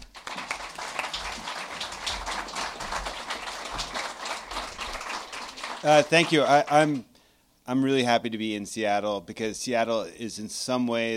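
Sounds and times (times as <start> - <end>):
audience applause welcoming an author at a book talk in Seattle: 0.0 - 7.0
speech: 5.8 - 7.1, 7.7 - 11.1.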